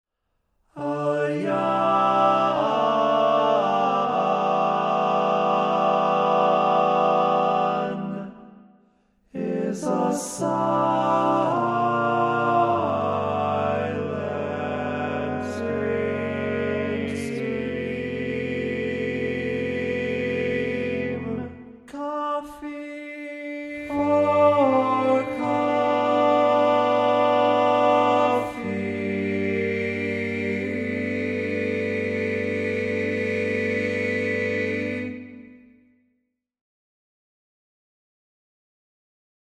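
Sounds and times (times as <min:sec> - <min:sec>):
barbershop tenor singing: 0:00.8 - 0:08.4, 0:09.4 - 0:35.5.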